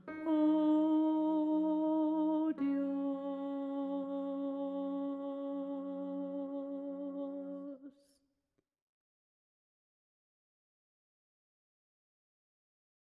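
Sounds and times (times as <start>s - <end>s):
soprano in choral music: 0.0s - 8.0s.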